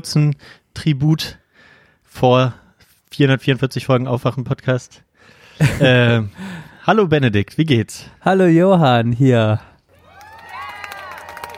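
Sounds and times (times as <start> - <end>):
speech: 0.0 - 1.4, 2.1 - 9.7
laughter: 5.6 - 6.2
played clapping and cheering: 9.9 - 11.5.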